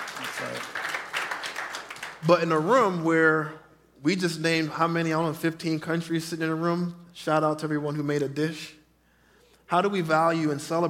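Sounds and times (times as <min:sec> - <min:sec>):
audience applause: 0:00.0 - 0:02.3
speech: 0:02.2 - 0:08.8, 0:09.7 - 0:10.8.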